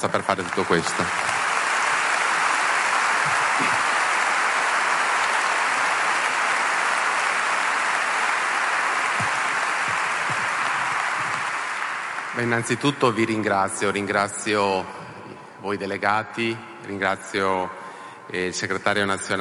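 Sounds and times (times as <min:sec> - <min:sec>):
speech: 0:00.0 - 0:01.4, 0:12.4 - 0:15.0, 0:15.6 - 0:19.3
audience applause: 0:00.0 - 0:13.0.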